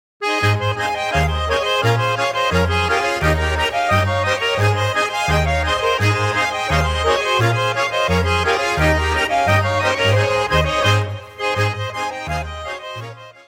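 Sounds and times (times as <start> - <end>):
polka music: 0.2 - 13.4.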